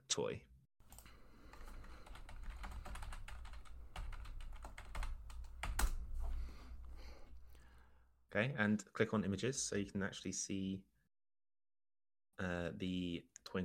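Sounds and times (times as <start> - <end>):
speech: 0.2 - 0.5, 8.4 - 10.9, 12.4 - 13.6
rapid typing on a computer keyboard entering a Google search: 0.9 - 6.0.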